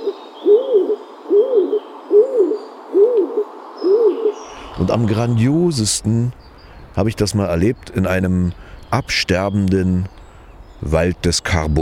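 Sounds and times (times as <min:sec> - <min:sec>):
stock dove cooing: 0:00.0 - 0:05.8
faint bird sounds: 0:00.0 - 0:11.8
speech: 0:04.8 - 0:10.2, 0:10.8 - 0:11.8.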